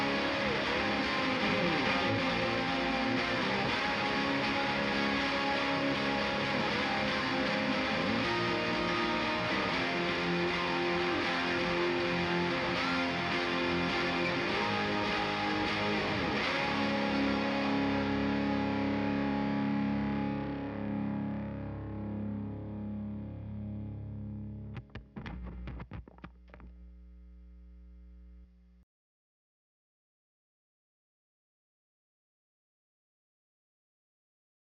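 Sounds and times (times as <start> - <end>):
guitars: 0.0 - 27.3.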